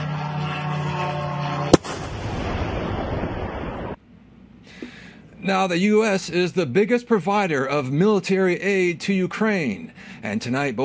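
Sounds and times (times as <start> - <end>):
drone engine hum: 0.0 - 2.2
gunfire shooting down a drone: 1.7 - 4.0
sharp bang: 1.7 - 4.0
speech: 5.5 - 10.8.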